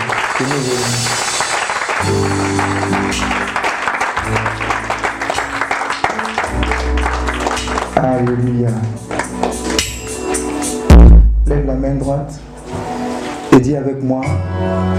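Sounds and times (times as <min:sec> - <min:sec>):
church congregation applauding and acclaiming the Lord: 0:00.0 - 0:10.8
speech: 0:00.4 - 0:01.2, 0:02.0 - 0:03.6, 0:04.3 - 0:05.1, 0:08.0 - 0:09.1, 0:11.5 - 0:12.5, 0:13.6 - 0:14.9
sustained music chords: 0:01.1 - 0:13.5.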